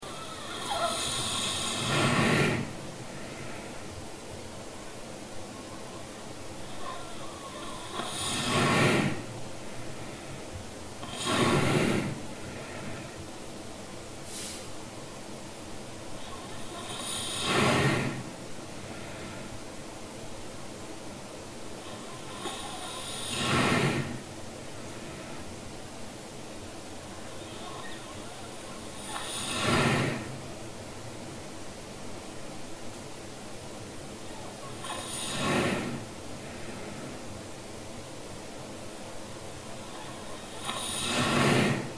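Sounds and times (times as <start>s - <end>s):
person snoring: 0.0s - 2.8s, 6.7s - 9.3s, 11.0s - 13.2s, 16.3s - 18.3s, 21.9s - 24.3s, 27.4s - 30.4s, 34.8s - 36.9s, 39.8s - 41.9s.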